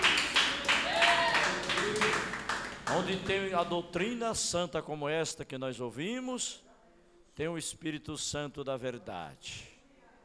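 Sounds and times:
congregation clapping hands in praise at a church service: 0.0 - 4.0
speech: 3.1 - 6.7, 7.4 - 9.7.

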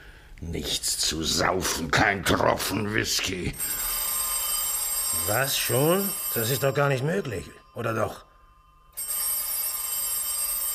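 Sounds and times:
speech: 0.4 - 3.9, 5.2 - 8.3
telephone bell ringing: 3.6 - 10.7.

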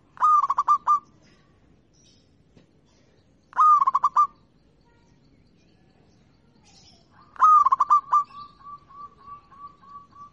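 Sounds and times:
zebra dove singing in stuttering bursts of rapid cooing notes: 0.0 - 1.1, 3.5 - 4.4, 7.1 - 10.3.

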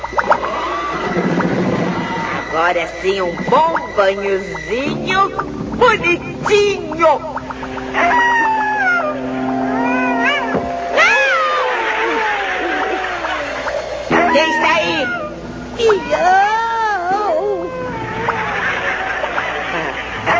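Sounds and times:
steady tonal drone: 0.0 - 20.3
laughter: 0.2 - 2.5, 11.1 - 15.3, 16.0 - 20.3
speech: 2.6 - 8.3, 14.3 - 14.8, 15.8 - 16.5
cat meowing: 8.0 - 11.6, 14.1 - 18.6.

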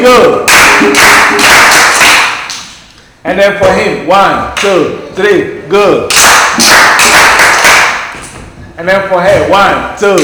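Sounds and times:
speech: 0.1 - 1.0, 3.4 - 7.0, 8.8 - 10.2
class of pupils clapping for a classmate in a classroom: 0.5 - 2.8, 6.1 - 8.2.

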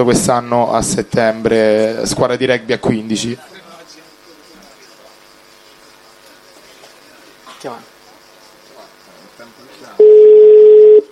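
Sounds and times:
speech: 0.0 - 3.6
WhatsApp call ringing tone: 10.0 - 11.1.

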